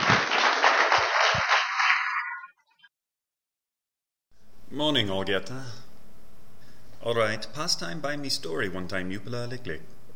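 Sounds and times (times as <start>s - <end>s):
church congregation applause welcoming people to be baptized: 0.0s - 2.5s
speech: 4.7s - 5.8s, 7.0s - 10.0s.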